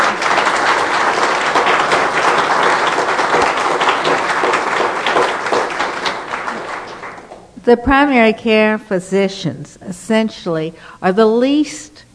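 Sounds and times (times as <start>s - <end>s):
large audience applause at a talk on family and internal medicine physicians: 0.0s - 7.6s
speech: 7.7s - 12.1s.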